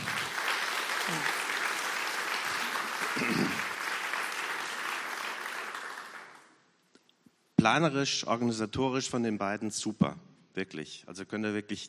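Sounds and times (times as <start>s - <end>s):
audience applause: 0.0s - 6.6s
speech: 3.2s - 3.6s, 7.6s - 11.8s.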